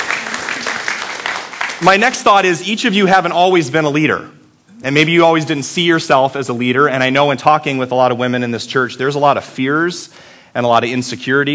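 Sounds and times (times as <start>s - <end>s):
crowd clapping: 0.0s - 2.3s
speech: 1.8s - 11.5s.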